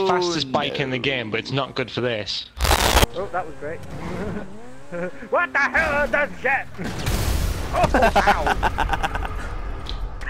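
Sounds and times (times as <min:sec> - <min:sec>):
speech: 0:00.0 - 0:02.5, 0:03.1 - 0:09.1
video game explosion: 0:02.6 - 0:03.1, 0:05.8 - 0:09.8
laughter: 0:04.0 - 0:05.6, 0:07.7 - 0:09.6.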